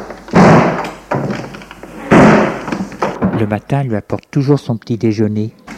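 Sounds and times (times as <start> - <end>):
door slammed shut hard: 0.3 - 3.6
speech: 3.4 - 5.6.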